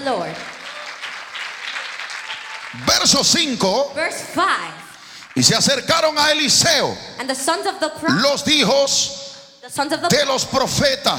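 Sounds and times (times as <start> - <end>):
speech: 0.0 - 0.6, 2.7 - 11.1
audience applause: 0.0 - 3.8, 4.7 - 6.2.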